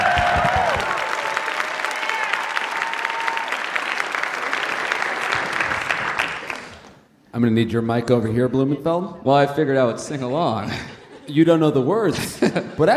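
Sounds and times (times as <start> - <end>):
audience applause: 0.0 - 7.0
speech: 7.4 - 12.9
laughter: 10.0 - 12.9.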